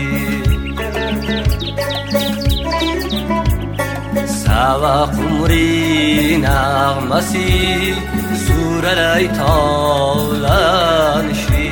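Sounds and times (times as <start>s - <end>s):
music with a steady low beat: 0.0s - 11.7s
nightingale singing in a spring garden: 0.0s - 11.7s
speech: 4.6s - 11.7s.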